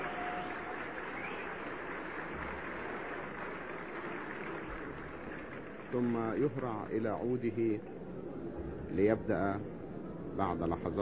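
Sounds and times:
audience applauding a performer at the Qasr El Nil cinema: 0.0s - 6.6s
speech: 5.9s - 8.0s, 8.9s - 9.8s, 10.4s - 11.0s.

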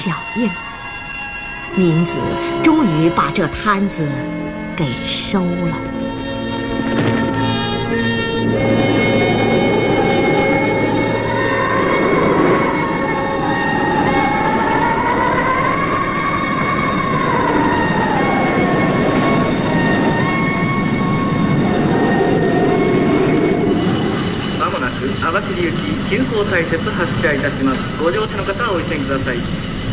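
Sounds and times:
speech: 0.0s - 0.7s, 1.7s - 6.3s, 25.6s - 29.7s
train running: 0.0s - 29.9s
wavering tonal sounds: 0.0s - 29.9s.

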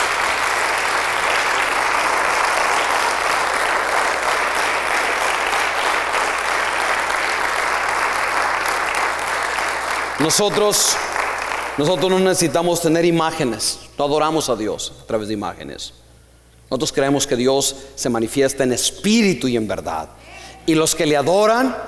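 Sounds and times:
congregation applause during a church service: 0.0s - 13.6s
speech: 10.3s - 11.2s, 11.8s - 16.0s, 16.7s - 21.8s.

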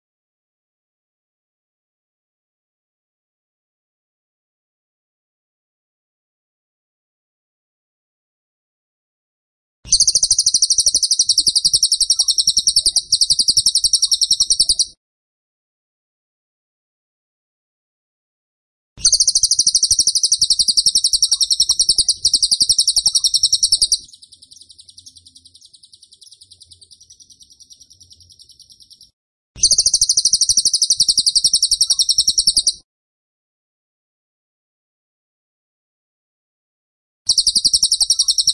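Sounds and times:
tembakan bird pulsed trill: 9.9s - 15.0s, 19.0s - 32.8s, 37.3s - 38.5s.

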